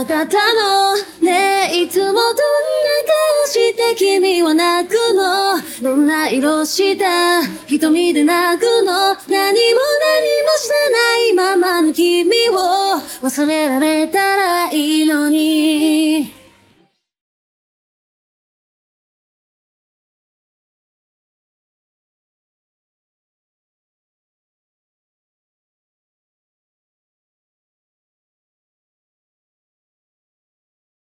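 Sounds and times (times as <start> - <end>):
person singing: 0.0 - 16.6.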